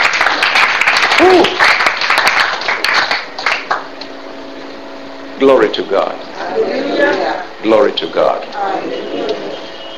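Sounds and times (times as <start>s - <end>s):
audience clapping: 0.0s - 4.0s
speech: 1.2s - 1.6s, 5.4s - 9.4s.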